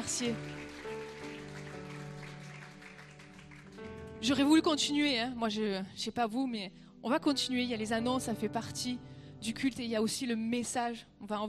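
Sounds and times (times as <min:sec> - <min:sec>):
audience applause: 0:00.0 - 0:04.2
speech: 0:00.1 - 0:00.7, 0:04.2 - 0:11.4.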